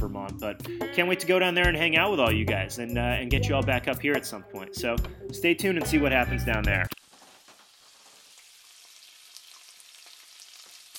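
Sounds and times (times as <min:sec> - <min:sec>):
speech: 0:00.2 - 0:07.0
bacon frying on a stove: 0:06.9 - 0:10.9.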